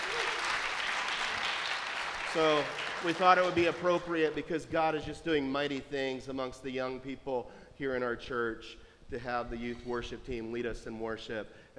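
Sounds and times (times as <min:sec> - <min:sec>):
crowd applauding: 0:00.0 - 0:04.4
speech: 0:02.3 - 0:11.7.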